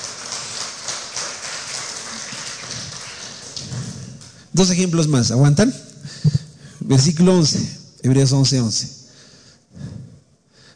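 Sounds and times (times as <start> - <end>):
audience applause: 0.0 - 4.4
speech: 4.6 - 5.9, 6.9 - 9.0.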